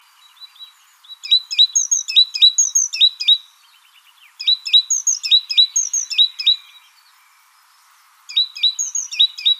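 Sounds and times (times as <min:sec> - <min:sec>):
great tit Parus major giving quick high clipped notes: 0:00.4 - 0:03.5, 0:04.3 - 0:06.8, 0:08.3 - 0:09.5.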